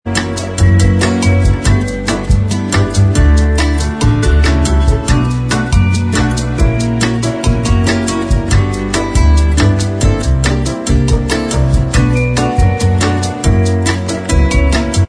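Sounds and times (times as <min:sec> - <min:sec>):
bossa nova instrumental track: 0:00.1 - 0:15.0.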